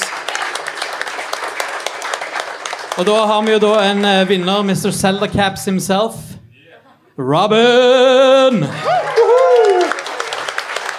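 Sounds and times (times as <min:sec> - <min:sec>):
audience applause: 0:00.0 - 0:05.3, 0:08.6 - 0:10.9
speech: 0:03.0 - 0:06.3, 0:07.2 - 0:09.2.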